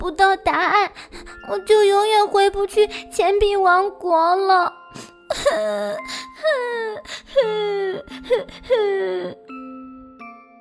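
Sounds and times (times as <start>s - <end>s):
speech: 0.0s - 9.5s
coin spirit crying in wailing sobs: 5.3s - 9.4s.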